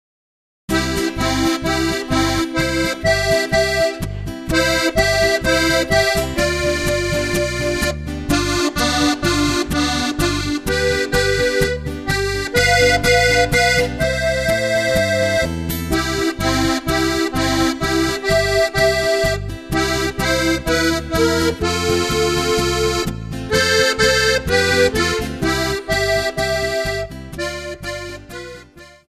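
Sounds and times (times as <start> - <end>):
march music: 0.8 - 29.0.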